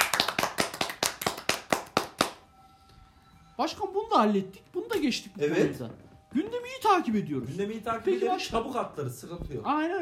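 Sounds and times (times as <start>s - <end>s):
applause, hands clapping: 0.0s - 2.5s
speech: 3.6s - 10.0s.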